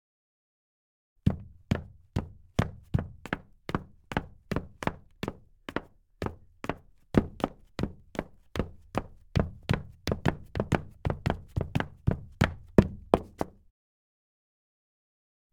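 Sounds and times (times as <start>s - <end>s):
dress boot footsteps on wood parquet: 1.4s - 13.4s.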